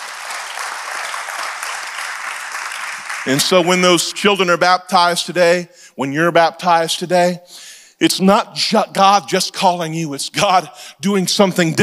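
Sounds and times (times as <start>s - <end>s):
audience clapping hands: 0.0s - 4.4s
speech: 3.2s - 11.8s.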